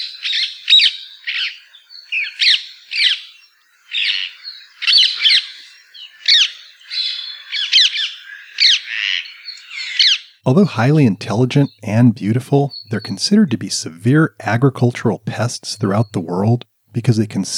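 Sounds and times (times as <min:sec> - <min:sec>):
birds squawking loudly at their roost: 0:00.0 - 0:14.0
speech: 0:10.4 - 0:17.5.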